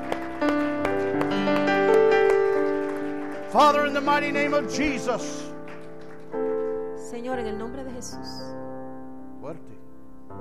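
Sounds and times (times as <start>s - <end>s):
audience clapping: 0.0s - 7.2s
speech: 3.6s - 5.5s, 7.2s - 8.6s.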